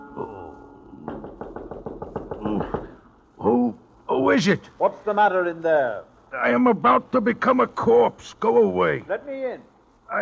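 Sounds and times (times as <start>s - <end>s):
speech: 0.2s - 0.4s, 4.4s - 10.2s
knock on a door: 1.0s - 3.0s.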